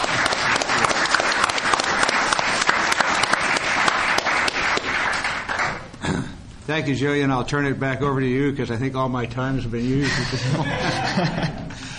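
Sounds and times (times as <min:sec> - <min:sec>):
audience applause welcoming a speaker to the stage: 0:00.0 - 0:05.9
speech: 0:06.7 - 0:11.6
laughter: 0:09.8 - 0:11.9.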